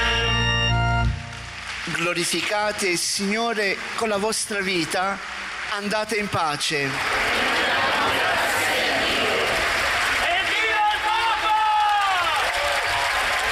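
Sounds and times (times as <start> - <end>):
crowd applause in a square: 1.1 - 13.5
speech: 2.0 - 7.3
crowd shouting and cheering in a square: 4.0 - 13.5.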